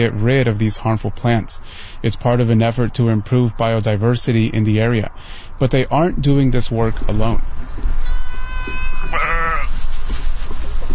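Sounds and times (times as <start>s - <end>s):
speech: 0.0s - 8.0s
goats and sheep bleating: 8.0s - 9.8s.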